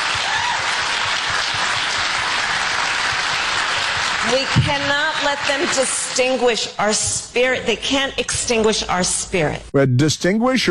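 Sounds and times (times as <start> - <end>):
crowd applause: 0.0 - 6.4
speech: 4.3 - 10.6.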